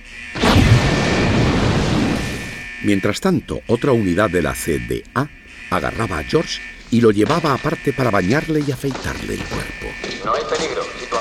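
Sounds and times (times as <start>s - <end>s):
bomb squad's controlled explosion of a sock: 0.4s - 2.6s
speech: 2.8s - 11.1s.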